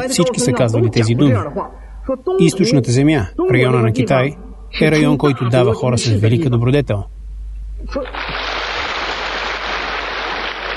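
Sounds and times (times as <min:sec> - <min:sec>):
speech: 0:00.0 - 0:07.2, 0:07.8 - 0:08.4
audience applause: 0:08.1 - 0:10.7.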